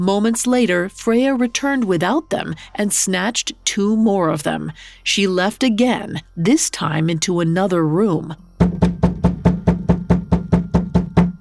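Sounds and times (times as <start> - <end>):
speech: 0.0 - 8.8
knocking on a door: 8.6 - 11.3.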